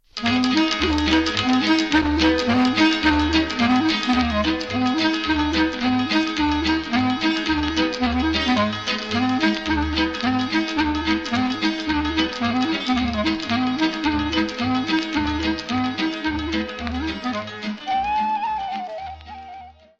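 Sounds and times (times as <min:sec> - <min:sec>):
Romanian hora folk dance music: 0:00.0 - 0:19.9.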